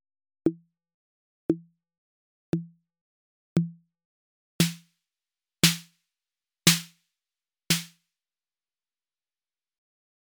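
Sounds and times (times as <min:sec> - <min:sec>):
808 drum machine snare hits: 0:04.6 - 0:04.8, 0:05.6 - 0:05.9, 0:06.7 - 0:06.9, 0:07.7 - 0:07.9.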